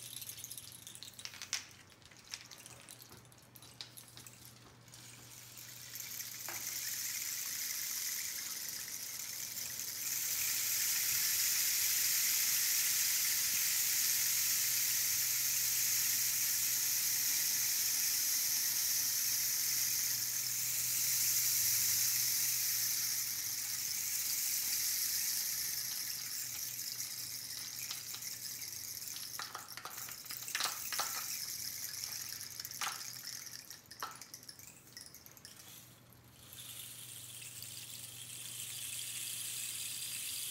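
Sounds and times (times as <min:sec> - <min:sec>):
rainsticks: 0:00.0 - 0:40.5.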